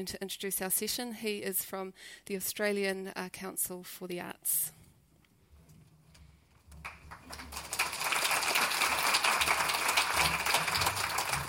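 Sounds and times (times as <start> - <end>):
speech: 0.0 - 4.8
audience applause: 6.8 - 11.4.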